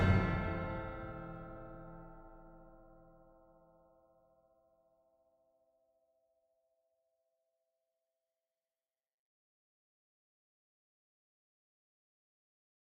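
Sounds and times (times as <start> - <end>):
battle music loop: 0.0 - 2.3.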